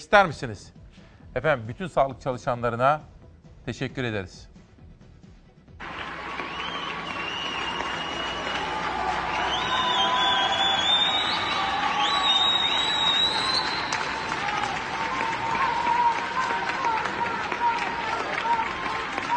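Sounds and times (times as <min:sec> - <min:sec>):
speech: 0:00.0 - 0:04.5
people on balconies and at windows applauding and cheering for health workers: 0:05.8 - 0:19.3.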